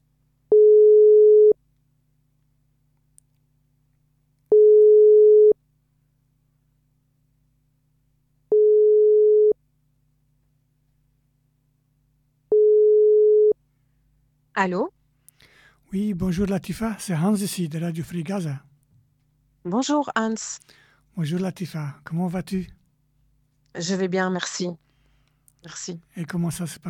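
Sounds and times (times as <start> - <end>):
telephone ringing tone while placing a call: 0.5 - 1.6, 4.5 - 5.6, 8.5 - 9.6, 12.5 - 13.6
speech: 14.6 - 15.0, 15.9 - 18.7, 19.6 - 22.8, 23.7 - 24.8, 25.6 - 26.8.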